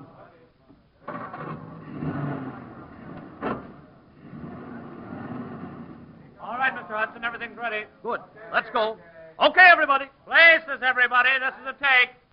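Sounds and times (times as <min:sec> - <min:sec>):
car engine revving and pulling away up a street: 0:01.1 - 0:06.9
speech: 0:06.8 - 0:12.2.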